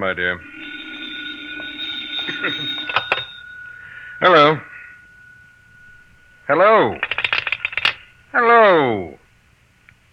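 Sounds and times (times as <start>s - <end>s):
speech: 0.0s - 0.6s, 2.3s - 3.0s, 4.2s - 4.8s, 6.5s - 7.2s, 8.4s - 9.2s
telephone ringing: 0.3s - 8.2s.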